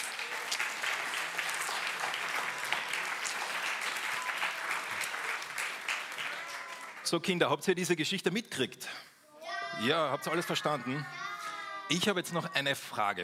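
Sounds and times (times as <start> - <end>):
audience applauding: 0.0 - 7.3
speech: 7.1 - 9.1, 9.8 - 11.2, 11.9 - 13.2.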